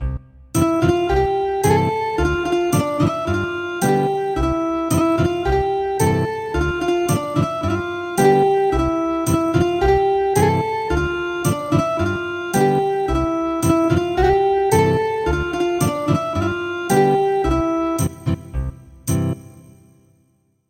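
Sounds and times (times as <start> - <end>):
ethnic guitar music: 0.6 - 18.4.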